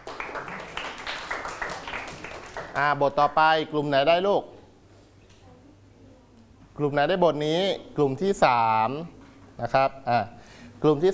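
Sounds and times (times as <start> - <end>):
schoolchildren clapping for a classmate: 0.0 - 3.0
speech: 2.8 - 4.5, 6.8 - 11.1.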